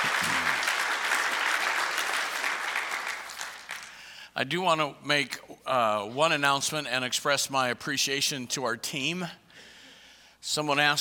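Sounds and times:
church congregation clapping during a morning service: 0:00.0 - 0:04.2
speech: 0:04.4 - 0:09.4, 0:10.4 - 0:11.0.

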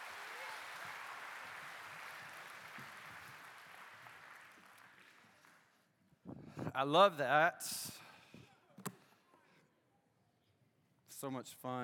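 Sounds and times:
audience applause for children: 0:00.0 - 0:05.5
speech: 0:06.8 - 0:08.0, 0:11.2 - 0:11.8.

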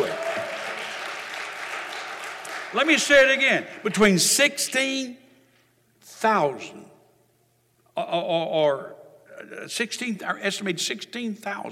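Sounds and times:
crowd clapping: 0:00.0 - 0:03.6
speech: 0:02.7 - 0:05.2, 0:06.2 - 0:06.9, 0:08.0 - 0:11.6.

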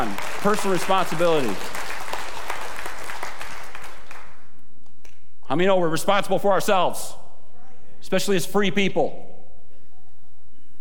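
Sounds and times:
speech: 0:00.0 - 0:01.8, 0:05.5 - 0:07.2, 0:08.1 - 0:09.3
audience clapping: 0:00.0 - 0:05.2.

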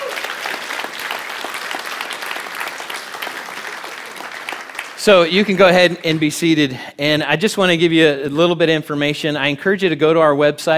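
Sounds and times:
audience applause: 0:00.0 - 0:06.4
speech: 0:05.0 - 0:10.7.

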